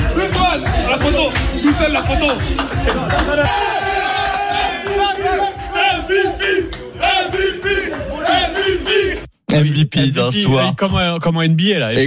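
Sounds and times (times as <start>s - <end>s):
footballers chanting and cheering in the Paris dressing room: 0.0s - 9.3s
speech: 0.2s - 3.7s, 5.0s - 12.0s.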